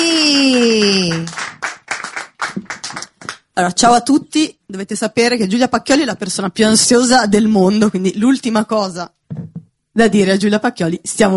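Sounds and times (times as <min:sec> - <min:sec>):
audience applause: 0:00.2 - 0:03.4
speech: 0:03.6 - 0:09.2, 0:10.0 - 0:11.3.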